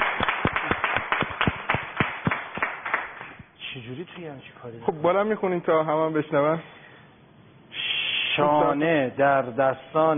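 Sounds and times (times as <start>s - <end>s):
hands clapping in someone's honour: 0.0s - 3.5s
speech: 3.8s - 6.8s, 8.4s - 10.1s.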